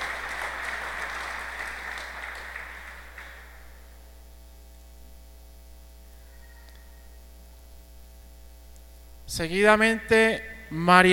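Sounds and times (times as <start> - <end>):
audience applause for a performer: 0.0 - 3.8
low steady hum: 2.8 - 11.1
speech: 9.3 - 11.1.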